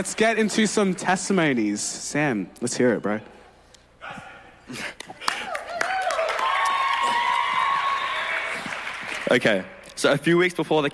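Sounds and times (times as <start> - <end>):
speech: 0.0 - 3.4, 4.1 - 5.3, 9.3 - 10.9
audience applause and cheering: 5.2 - 9.8.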